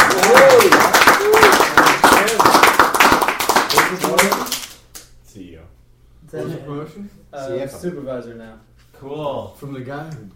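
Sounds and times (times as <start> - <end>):
audience applause: 0.0 - 4.7
speech: 7.0 - 10.3.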